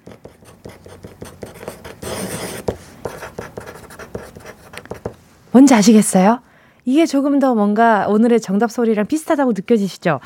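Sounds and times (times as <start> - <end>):
writing with a thick pen on paper: 0.0 - 5.2
speech: 5.5 - 10.2.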